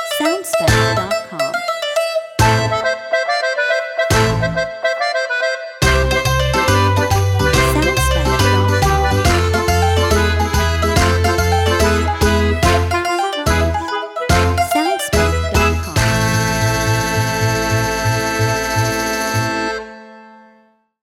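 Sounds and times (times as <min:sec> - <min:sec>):
tavern tarantella dance music: 0:00.1 - 0:01.6, 0:02.4 - 0:19.7.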